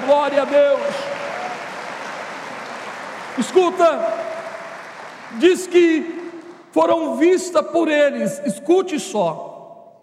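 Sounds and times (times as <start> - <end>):
audience applauding: 0.0 - 6.7
speech: 0.1 - 1.0, 3.4 - 4.3, 5.3 - 6.2, 6.8 - 9.5.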